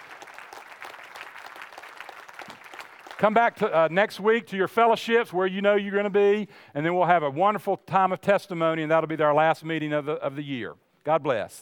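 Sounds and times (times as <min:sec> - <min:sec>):
audience clapping: 0:00.0 - 0:03.9
speech: 0:03.2 - 0:11.6.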